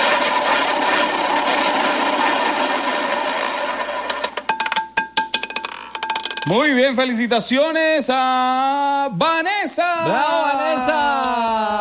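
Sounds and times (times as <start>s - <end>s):
prize roulette wheel spinning and clicking: 0.0s - 6.8s
speech: 6.5s - 11.7s.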